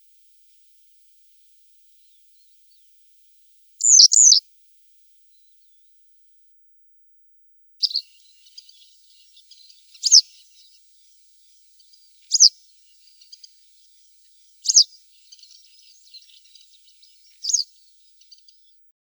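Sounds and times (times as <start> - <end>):
black-headed wagtail buzzy call notes: 3.8 - 4.4, 7.8 - 10.7, 11.8 - 13.6, 14.6 - 17.7
faint thin twittering: 3.8 - 4.4, 7.8 - 18.8.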